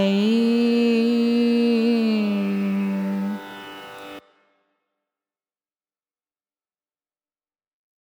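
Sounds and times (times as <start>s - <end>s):
carnatic music in raga chala nattai: 0.0s - 4.4s.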